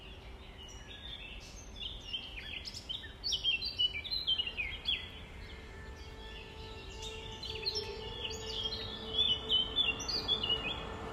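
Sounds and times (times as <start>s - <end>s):
nightingale singing: 0.0s - 11.1s.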